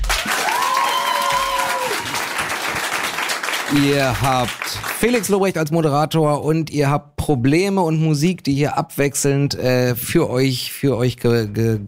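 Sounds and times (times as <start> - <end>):
live audience clapping: 0.0 - 5.8
speech: 3.7 - 11.8.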